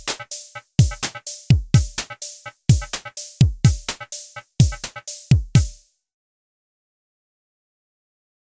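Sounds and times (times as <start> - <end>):
drum machine clap: 0.0 - 5.9.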